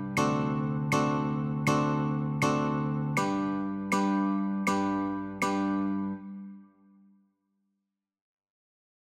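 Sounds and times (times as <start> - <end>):
Christmas song chords on guitar: 0.0 - 6.7.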